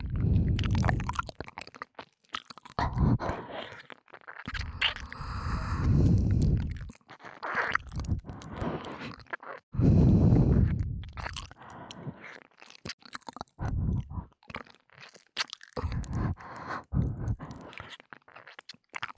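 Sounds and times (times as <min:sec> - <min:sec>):
ASMR ear licking sounds: 0:00.0 - 0:19.1
ASMR breathy sighs: 0:00.1 - 0:00.8, 0:02.8 - 0:03.8, 0:04.6 - 0:06.9, 0:08.0 - 0:09.2, 0:09.8 - 0:12.4, 0:13.6 - 0:14.4, 0:15.8 - 0:18.0.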